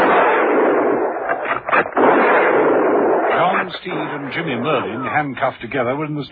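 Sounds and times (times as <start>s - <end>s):
gunfire from a firing squad: 0.0s - 5.0s
speech: 3.7s - 6.2s.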